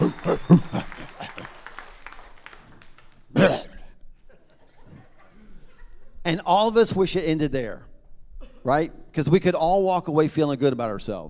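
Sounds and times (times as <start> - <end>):
laughter: 0.0 - 1.8, 4.2 - 6.2
audience cheering and whooping: 0.0 - 3.0
audience clapping: 0.0 - 3.6
speech: 0.5 - 0.7, 6.5 - 7.9, 8.6 - 11.2.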